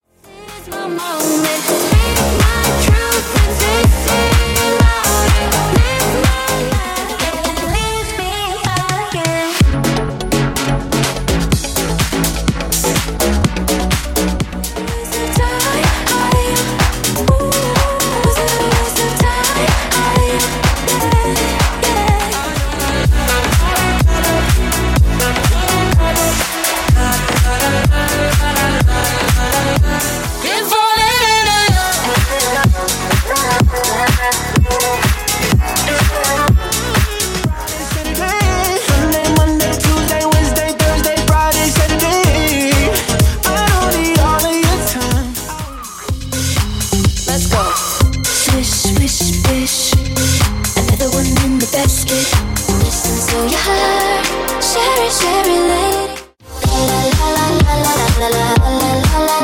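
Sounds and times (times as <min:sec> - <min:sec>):
club house dance music mix at 126 bpm: 0:00.3 - 0:59.4.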